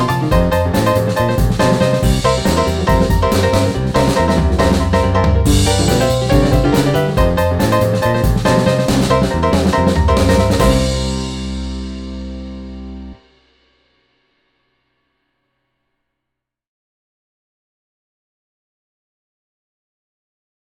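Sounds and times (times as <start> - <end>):
kids blues music: 0.0 - 13.2.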